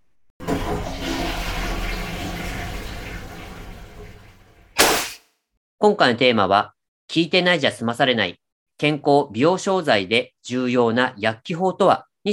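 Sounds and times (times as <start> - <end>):
toilet flushing: 0.4 - 4.8
speech: 5.8 - 12.3.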